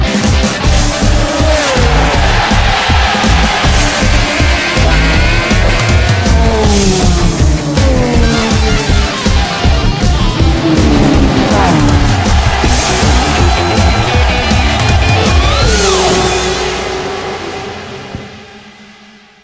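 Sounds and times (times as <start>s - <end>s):
MotoGP racing motorcycles: 0.1s - 19.4s.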